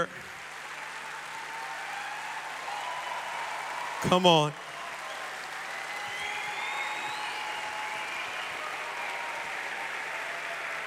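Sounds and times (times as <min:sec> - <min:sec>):
speech: 0:00.0 - 0:00.3, 0:04.0 - 0:04.6
audience clapping and celebrating: 0:00.0 - 0:10.8.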